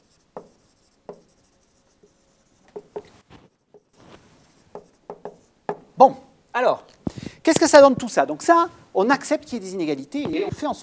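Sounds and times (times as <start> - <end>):
handwriting strokes during a lecture: 0.0 - 5.6
speech: 6.0 - 6.9, 7.5 - 10.8.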